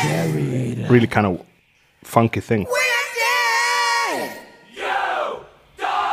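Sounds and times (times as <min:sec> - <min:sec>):
speech: 0:00.0 - 0:02.8
hockey crowd chanting like a choir: 0:02.7 - 0:06.1.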